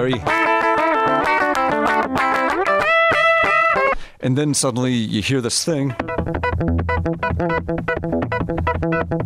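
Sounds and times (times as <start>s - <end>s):
speech: 0.0s - 1.2s, 4.2s - 9.2s
heavily distorted electric guitar with squealing harmonics: 0.0s - 4.0s, 5.8s - 9.2s.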